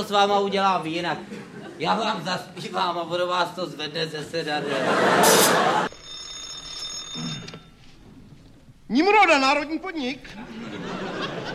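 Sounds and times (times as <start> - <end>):
speech: 0.0 - 6.0, 8.9 - 11.0
laughter: 1.1 - 2.3, 4.4 - 5.9, 10.3 - 11.5
dispatcher's telephone ringing: 5.2 - 8.0.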